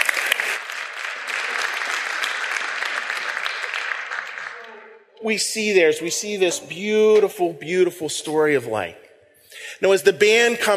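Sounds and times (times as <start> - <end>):
audience applause: 0.0 - 4.9
speech: 5.2 - 9.0, 9.8 - 10.7.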